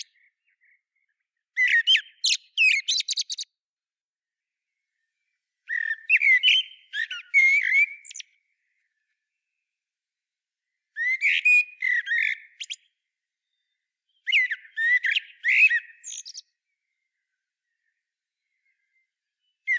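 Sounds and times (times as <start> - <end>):
common blackbird song: 0.0 - 3.5, 5.7 - 8.9, 11.0 - 19.7.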